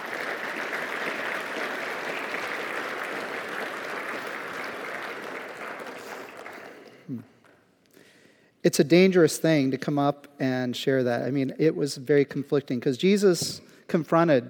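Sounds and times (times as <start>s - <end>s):
audience applauding: 0.0s - 7.2s
speech: 7.1s - 7.3s, 8.6s - 14.4s.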